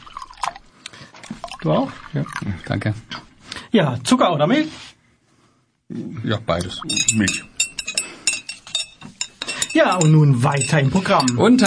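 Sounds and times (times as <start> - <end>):
speech: 1.6 - 5.0, 5.9 - 7.5, 9.8 - 11.6
coffee cups clinking together: 6.6 - 11.6
soft rattle of crockery: 6.8 - 11.6.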